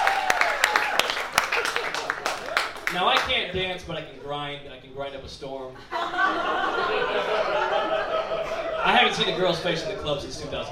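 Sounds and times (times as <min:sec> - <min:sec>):
scattered audience clapping: 0:00.0 - 0:03.6
speech: 0:02.9 - 0:08.0, 0:08.8 - 0:10.6
laughter: 0:05.8 - 0:10.6
murmur of crowd voices: 0:07.2 - 0:10.6.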